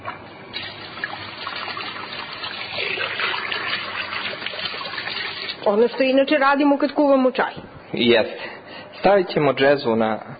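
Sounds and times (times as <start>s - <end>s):
water poured into a džezva for making tea: 0.5s - 5.8s
speech: 5.7s - 8.4s, 9.0s - 10.3s.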